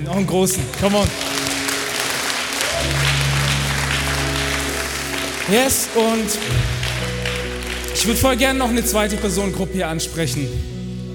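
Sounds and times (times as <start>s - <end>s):
speech: 0.0s - 1.3s, 5.5s - 6.8s, 8.0s - 10.7s
audience applause: 0.6s - 9.4s.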